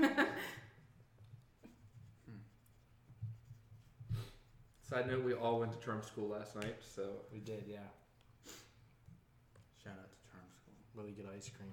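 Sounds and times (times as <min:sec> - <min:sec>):
pen scratching across paper while drawing: 0:01.6 - 0:04.8
speech: 0:04.9 - 0:08.6, 0:11.0 - 0:11.7.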